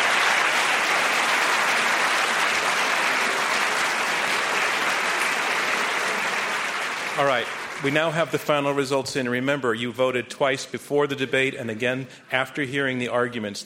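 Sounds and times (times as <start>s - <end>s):
round of applause from a large audience: 0.0s - 8.4s
speech: 7.2s - 13.6s.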